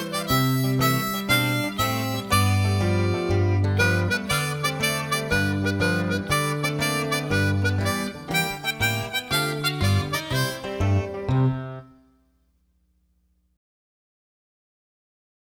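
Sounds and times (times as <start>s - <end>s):
harmonica folk tune: 0.0s - 12.2s.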